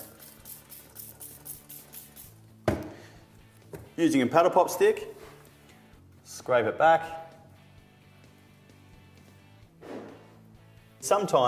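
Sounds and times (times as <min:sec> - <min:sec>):
spraying smoothing agent onto silicone: 0:00.0 - 0:02.4
speech: 0:04.0 - 0:05.2, 0:06.4 - 0:07.2, 0:11.1 - 0:11.4.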